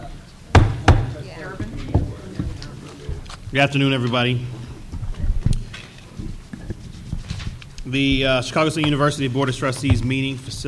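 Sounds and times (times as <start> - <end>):
gavel banging: 0.5 - 3.2, 8.0 - 10.6
speech: 3.5 - 4.6, 7.9 - 10.6.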